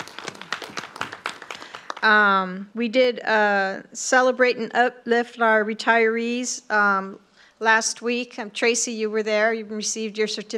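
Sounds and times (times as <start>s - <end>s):
audience clapping for police and campus safety staff: 0.0s - 2.1s
speech: 2.0s - 10.5s.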